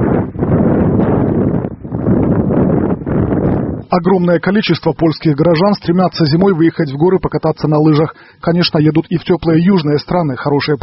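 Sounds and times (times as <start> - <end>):
morning wind in the Polish Tatra mountains: 0.0 - 8.2
speech: 3.9 - 10.8.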